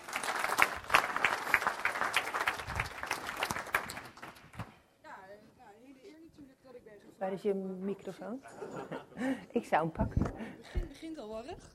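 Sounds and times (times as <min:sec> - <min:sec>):
encouraging applause from audience: 0:00.0 - 0:04.6
speech: 0:07.2 - 0:11.7
laughter: 0:08.4 - 0:09.6.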